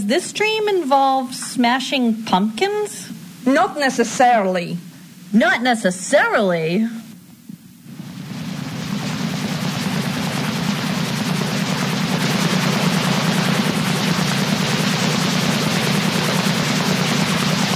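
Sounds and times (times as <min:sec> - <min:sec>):
speech: 0:00.0 - 0:07.0
military helicopter hovering: 0:07.7 - 0:17.7.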